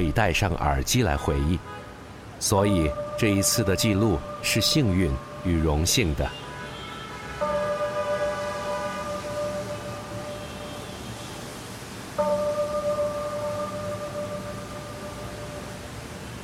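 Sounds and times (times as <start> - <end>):
speech: 0.0 - 1.8, 2.4 - 6.4
city clock tower bell ringing: 2.5 - 6.3, 7.4 - 10.8, 12.2 - 16.0.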